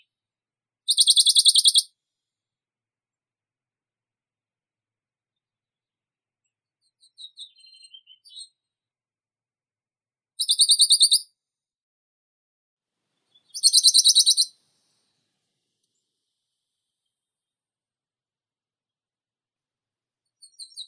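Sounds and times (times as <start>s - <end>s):
Phylloscopus bonelli warbler: 0.9s - 1.9s, 10.4s - 11.2s, 13.5s - 14.5s.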